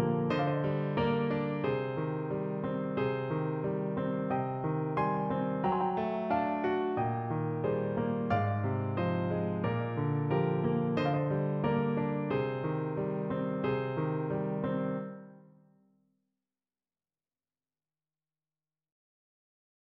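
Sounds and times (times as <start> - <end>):
piano piece: 0.0 - 15.6.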